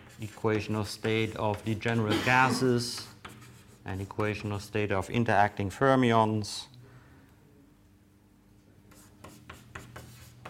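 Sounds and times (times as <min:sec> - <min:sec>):
chalk scratching on a board during a physics lecture: 0:00.0 - 0:04.6, 0:08.9 - 0:10.4
speech: 0:00.2 - 0:03.2, 0:03.9 - 0:06.7.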